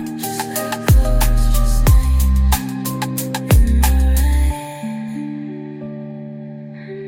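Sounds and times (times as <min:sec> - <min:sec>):
cinematic lo-fi rap: 0:00.2 - 0:04.5.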